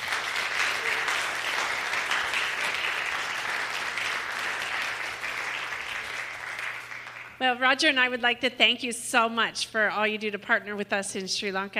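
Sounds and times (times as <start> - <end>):
crowd clapping: 0.0 - 7.4
speech: 7.4 - 11.7.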